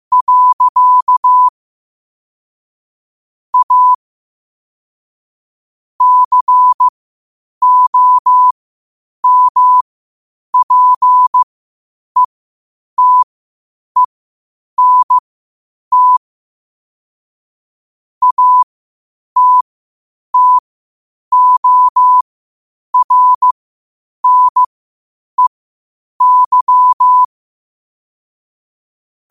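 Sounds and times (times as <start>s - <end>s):
morse code at 5 wpm: 0.1s - 1.5s, 3.6s - 4.0s, 6.0s - 6.9s, 7.6s - 8.5s, 9.2s - 9.8s, 10.6s - 11.4s, 13.0s - 13.3s, 14.8s - 15.2s, 15.9s - 16.2s, 18.2s - 18.7s, 19.4s - 19.6s, 20.4s - 20.6s, 21.3s - 22.2s, 23.0s - 23.5s, 24.2s - 24.7s, 26.2s - 27.3s.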